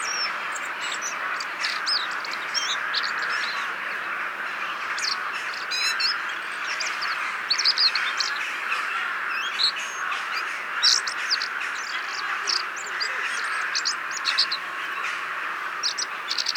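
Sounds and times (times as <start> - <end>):
common blackbird chinking calls: 0.0 - 15.0, 15.7 - 16.5.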